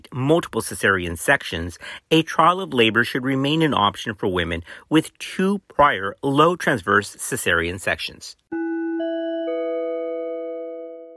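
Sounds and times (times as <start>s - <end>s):
speech: 0.2s - 8.4s
alarm chime: 8.5s - 11.1s.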